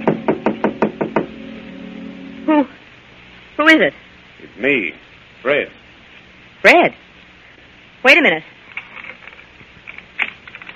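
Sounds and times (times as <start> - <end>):
knocking on an apartment door: 0.0 - 1.4
speech: 3.6 - 5.8, 6.6 - 7.0, 8.0 - 8.6.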